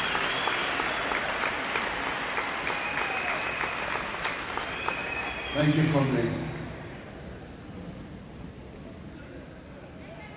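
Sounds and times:
standing ovation applause from a large crowd: 0.0s - 6.2s
speech: 5.6s - 6.5s.

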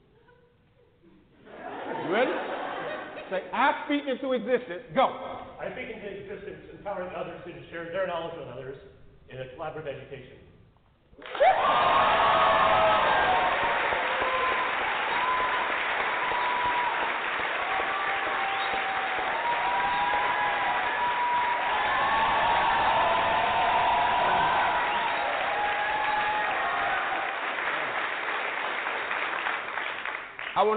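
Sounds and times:
laughter: 1.4s - 3.5s
speech: 3.3s - 10.5s
audience clapping: 11.2s - 30.7s.

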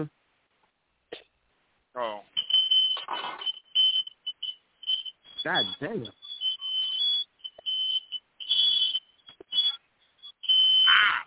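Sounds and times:
smoke detector going off with high-pitched beeps: 2.3s - 11.2s
speech: 5.4s - 6.2s.

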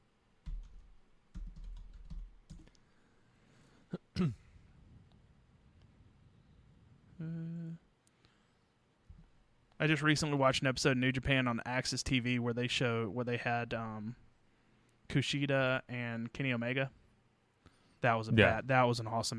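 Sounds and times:
typing on a computer keyboard to look something up: 0.4s - 2.8s
speech: 4.2s - 4.4s, 9.8s - 14.2s, 15.1s - 17.0s, 18.0s - 19.3s.

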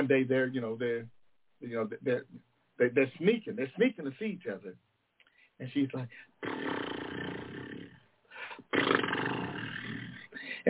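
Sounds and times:
speech: 0.0s - 4.9s, 5.6s - 6.8s
voice imitating a lion or tiger roar: 6.4s - 8.0s, 8.7s - 10.4s.

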